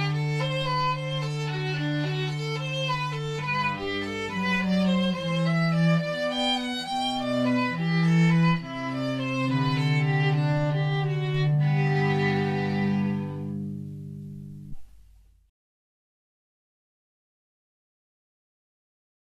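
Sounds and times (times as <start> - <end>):
viol and cello cantata: 0.0 - 14.7.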